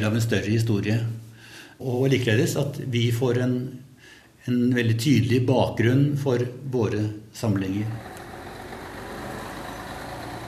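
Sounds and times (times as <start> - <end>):
speech: 0.0 - 1.2, 1.8 - 8.1
large tourist bus engine idling: 7.8 - 10.4.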